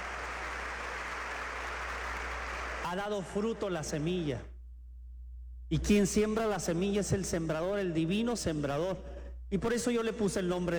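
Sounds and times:
congregation applause in a church for consecrated religious sisters: 0:00.0 - 0:04.0
low steady hum: 0:00.0 - 0:10.7
speech: 0:02.9 - 0:04.5, 0:05.7 - 0:10.7.

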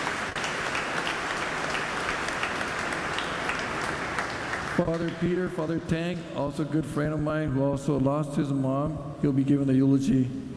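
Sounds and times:
audience applause: 0:00.0 - 0:05.3
speech: 0:04.8 - 0:10.5.

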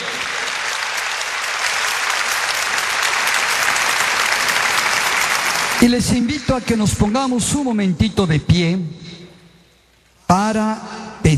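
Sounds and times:
audience applause: 0:00.0 - 0:07.3
speech: 0:05.8 - 0:09.1, 0:10.3 - 0:11.3.

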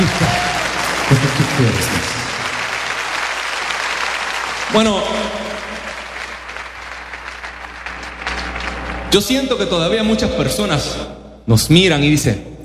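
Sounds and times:
audience applause: 0:00.0 - 0:09.3
speech: 0:01.6 - 0:02.1, 0:04.7 - 0:05.4, 0:09.1 - 0:12.5.

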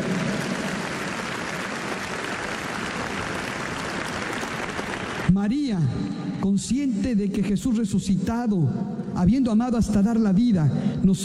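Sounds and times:
crowd applause: 0:00.0 - 0:05.4
speech: 0:05.3 - 0:11.2.

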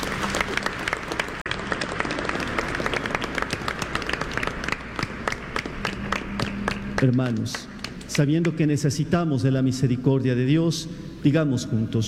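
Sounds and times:
applause: 0:00.0 - 0:08.9
speech: 0:07.0 - 0:12.0.

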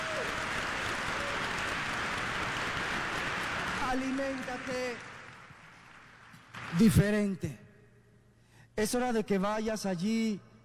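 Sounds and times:
audience applause: 0:00.0 - 0:06.8
speech: 0:03.9 - 0:05.1, 0:06.7 - 0:07.6, 0:08.8 - 0:10.5.

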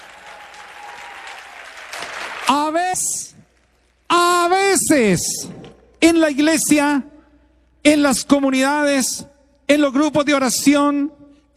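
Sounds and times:
church audience applause: 0:00.0 - 0:02.8
speech: 0:02.5 - 0:03.4, 0:04.9 - 0:07.1, 0:07.8 - 0:11.5.

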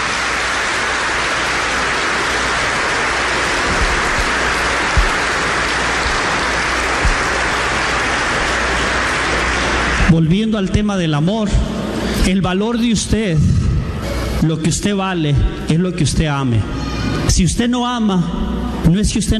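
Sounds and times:
audience applause: 0:00.0 - 0:10.4
speech: 0:10.2 - 0:13.6, 0:14.4 - 0:19.3.

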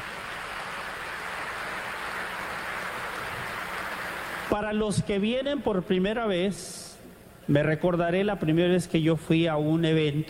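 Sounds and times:
audience applause: 0:00.0 - 0:04.5
speech: 0:04.5 - 0:06.9, 0:07.5 - 0:10.2.

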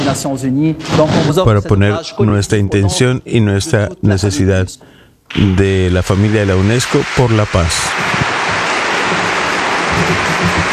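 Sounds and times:
speech: 0:00.1 - 0:08.2, 0:10.0 - 0:10.7
crowd applauding: 0:06.1 - 0:10.7.

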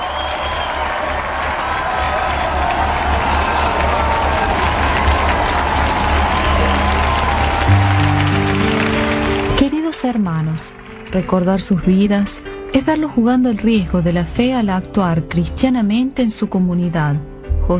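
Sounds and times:
audience applause: 0:00.0 - 0:13.6
speech: 0:10.0 - 0:17.7.

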